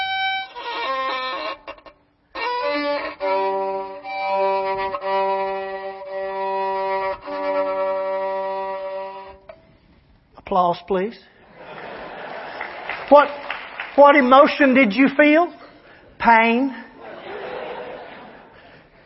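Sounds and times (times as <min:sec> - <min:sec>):
violin playing with a rough strained tone: 0:00.0 - 0:09.9
speech: 0:10.5 - 0:11.3, 0:13.1 - 0:13.4, 0:14.0 - 0:15.6, 0:16.2 - 0:16.8
laughter: 0:11.5 - 0:13.1, 0:17.0 - 0:19.0.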